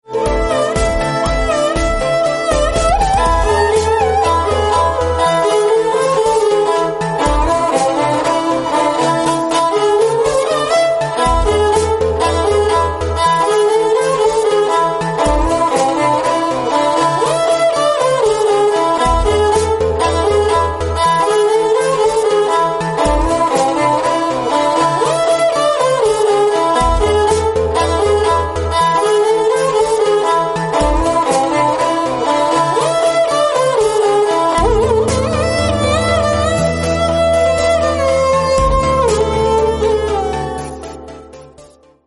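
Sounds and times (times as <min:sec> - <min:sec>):
sarangi tune: 0:00.0 - 0:42.0.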